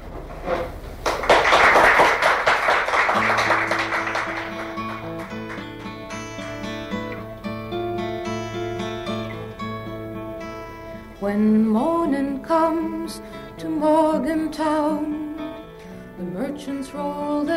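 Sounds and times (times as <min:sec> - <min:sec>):
audience applause welcoming a performer back: 0:01.0 - 0:07.2
acoustic guitar playing: 0:02.8 - 0:17.5
speech: 0:11.3 - 0:11.8, 0:12.5 - 0:15.1, 0:16.5 - 0:17.5.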